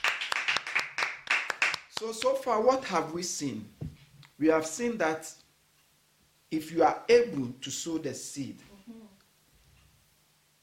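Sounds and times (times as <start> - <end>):
audience clapping hands: 0.0 - 2.5
speech: 2.0 - 3.8, 4.4 - 5.4, 6.5 - 9.0.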